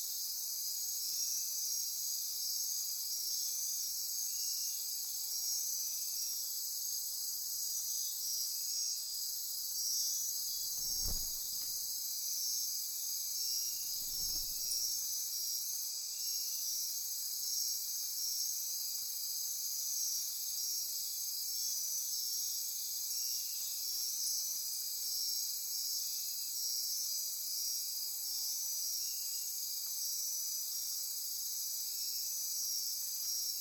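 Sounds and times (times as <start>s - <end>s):
insect chorus: 0.0s - 33.5s
low thump: 10.7s - 11.8s.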